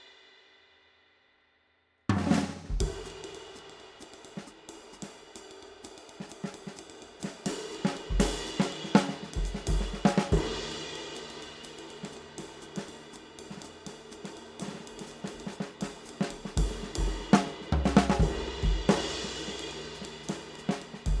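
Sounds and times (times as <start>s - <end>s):
24-inch vintage ride cymbal: 2.7s - 21.1s.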